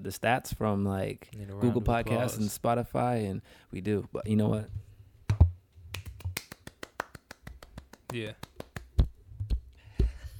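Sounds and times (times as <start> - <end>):
speech: 0.0 - 4.9, 8.1 - 8.5
hosts clapping for themselves: 5.9 - 9.1.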